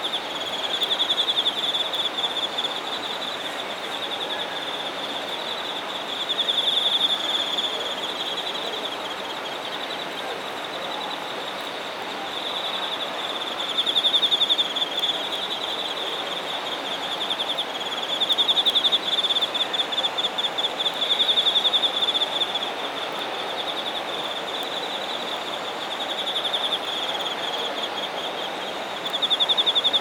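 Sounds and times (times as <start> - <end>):
insect trilling: 0.0 - 29.9
steady hiss: 0.0 - 29.9.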